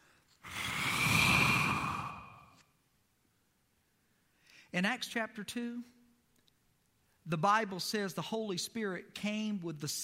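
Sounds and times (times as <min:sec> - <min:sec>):
forceful exhaled breath demonstrating Jesus breathing on the disciples: 0:00.4 - 0:02.6
speech: 0:04.8 - 0:06.0, 0:07.2 - 0:10.0.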